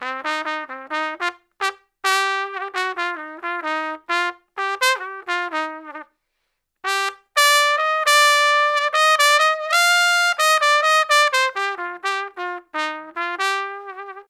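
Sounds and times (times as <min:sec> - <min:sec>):
traditional jazz trumpet solo: 0:00.0 - 0:06.2, 0:06.8 - 0:14.2.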